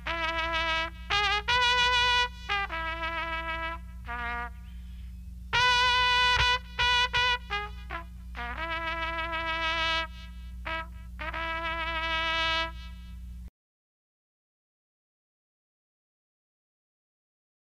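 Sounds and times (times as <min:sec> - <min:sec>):
cavalry trumpet calls: 0:00.0 - 0:13.2
funeral march: 0:00.0 - 0:13.3.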